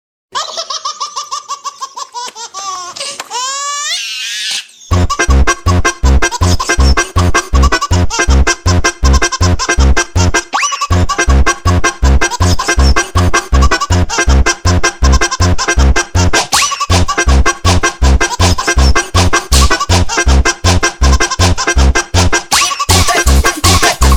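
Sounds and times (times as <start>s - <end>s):
baby laughing: 0.3s - 5.0s, 6.2s - 8.3s, 9.2s - 11.3s, 12.2s - 14.3s, 16.6s - 17.2s, 18.2s - 20.0s, 22.6s - 24.1s
sped up Jersey funk music: 4.9s - 24.1s.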